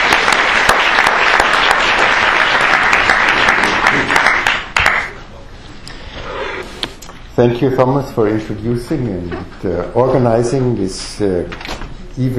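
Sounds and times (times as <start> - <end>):
audience applause welcoming a lecturer: 0.0 - 5.2
speech: 7.4 - 12.3.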